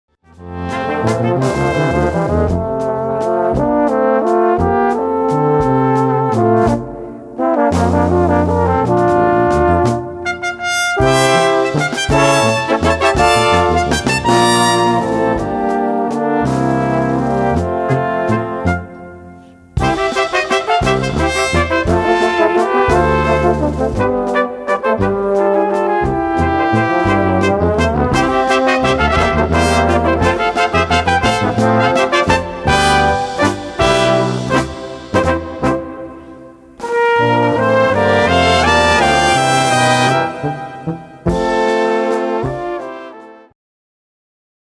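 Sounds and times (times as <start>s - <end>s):
waltz music: 0.6s - 42.6s.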